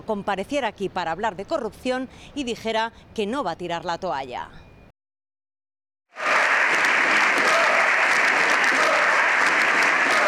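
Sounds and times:
speech: 0.1s - 4.6s
parliamentary applause: 6.2s - 10.2s.

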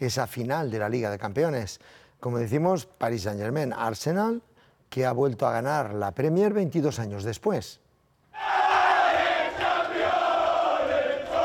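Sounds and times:
speech: 0.0s - 7.8s
large crowd chanting in celebration: 8.4s - 11.4s.

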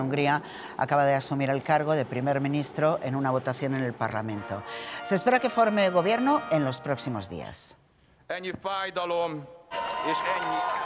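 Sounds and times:
speech: 0.0s - 10.8s
applause and cheers in parliament: 9.7s - 10.8s.

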